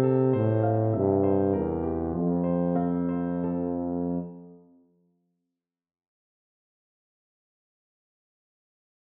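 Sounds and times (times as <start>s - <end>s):
tuba playing: 0.0s - 4.6s.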